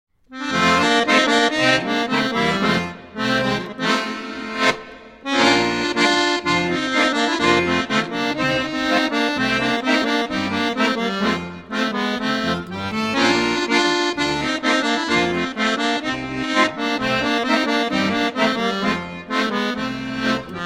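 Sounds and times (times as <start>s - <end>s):
instrumental music: 0.1s - 20.6s.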